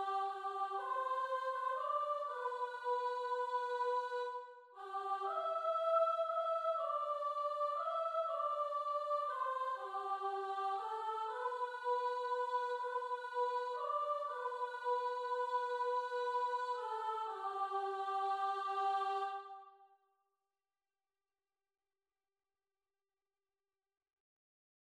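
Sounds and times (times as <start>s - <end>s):
soprano voice: 0.0s - 19.4s.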